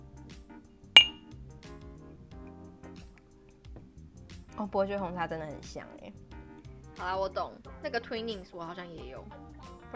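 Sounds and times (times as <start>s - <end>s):
glasses clinking in a toast: 1.0s - 1.2s
speech: 4.6s - 6.3s, 7.0s - 9.9s.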